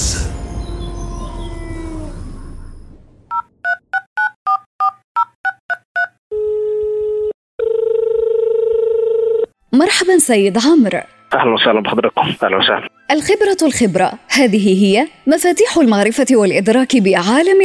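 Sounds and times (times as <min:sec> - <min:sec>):
telephone keypad dual-tone dialing beeps: 0:03.3 - 0:06.2
telephone ringing tones: 0:06.3 - 0:09.6
speech: 0:09.8 - 0:17.6.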